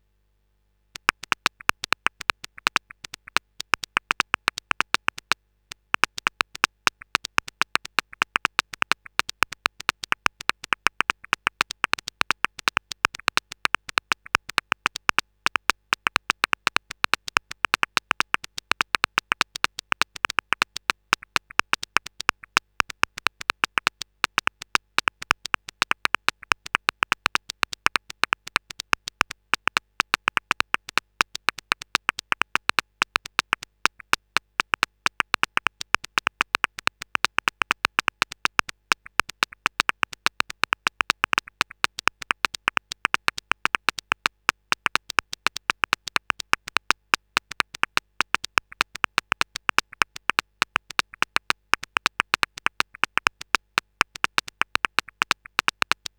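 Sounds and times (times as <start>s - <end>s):
noise beats: 1.0s - 56.1s.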